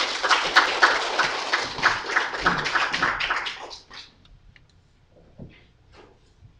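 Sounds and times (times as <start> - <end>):
audience applause: 0.0 - 4.1.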